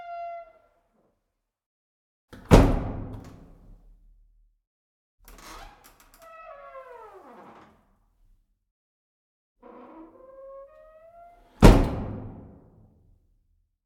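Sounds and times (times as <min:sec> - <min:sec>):
old wooden entrance door hits: 0:02.4 - 0:03.4, 0:11.6 - 0:12.4
old wooden entrance door creaking: 0:05.3 - 0:08.0, 0:09.6 - 0:12.5.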